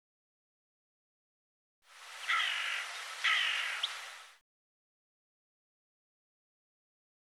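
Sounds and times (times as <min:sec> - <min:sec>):
steady hissing background noise: 0:01.9 - 0:04.4
bird harsh raspy calls: 0:02.0 - 0:04.4.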